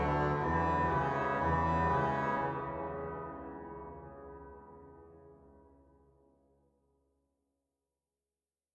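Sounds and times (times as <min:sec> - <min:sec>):
organ toccata in B minor on Organteq: 0:00.0 - 0:04.9.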